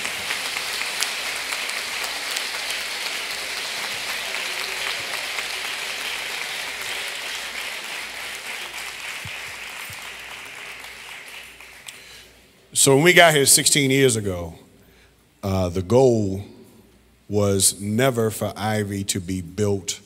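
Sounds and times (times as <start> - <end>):
audience applauding ministry leaders: 0.0 - 12.2
speech: 12.8 - 14.7, 15.4 - 16.5, 17.3 - 20.0.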